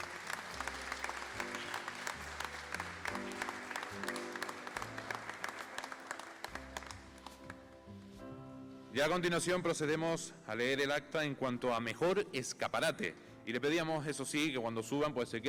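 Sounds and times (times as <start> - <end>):
audience applause: 0.0 - 7.6
speech: 9.0 - 15.4.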